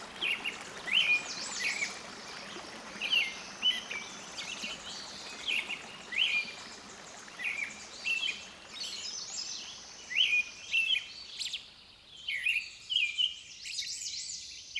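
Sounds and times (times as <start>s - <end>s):
songbirds in dense chorus of chirps, trills and whistles: 0.0s - 14.7s.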